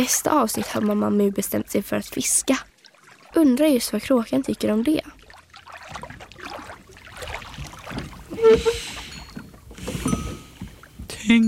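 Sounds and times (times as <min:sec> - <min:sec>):
speech: 0:00.0 - 0:02.7, 0:03.3 - 0:05.2, 0:08.4 - 0:08.9, 0:11.3 - 0:11.4
oars of a rowboat dipping and splashing on a lake: 0:00.0 - 0:11.4
oarlock squeak: 0:07.9 - 0:10.9.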